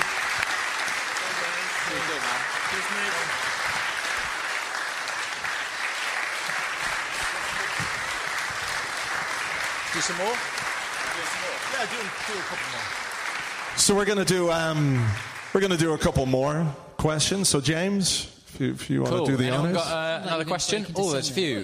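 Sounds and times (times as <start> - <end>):
sustained dense applause from a crowd: 0.0 - 16.3
speech: 2.7 - 3.8, 10.0 - 10.6, 11.2 - 13.1, 13.8 - 21.6.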